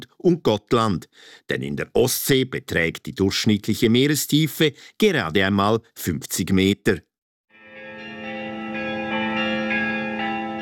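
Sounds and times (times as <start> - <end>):
speech: 0.2 - 7.1
Visby cathedral church bells ringing: 7.6 - 10.6.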